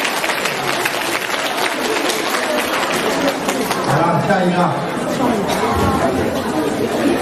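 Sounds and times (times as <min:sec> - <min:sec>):
warm audience applause: 0:00.0 - 0:04.3
speech: 0:04.3 - 0:07.1.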